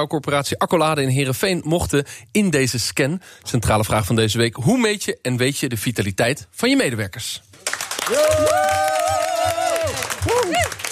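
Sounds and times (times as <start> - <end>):
speech: 0.0 - 8.8
staff applause and cheering: 7.6 - 10.9.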